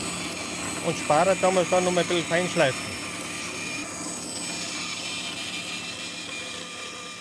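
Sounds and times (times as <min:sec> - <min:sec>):
saw cutting a wooden horse shape: 0:00.0 - 0:07.1
speech: 0:00.8 - 0:02.9.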